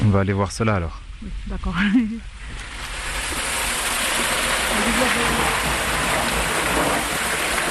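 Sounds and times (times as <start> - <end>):
speech: 0.1 - 2.7, 4.8 - 5.8
water rushing through an underground gallery toward a reservoir: 2.3 - 7.6.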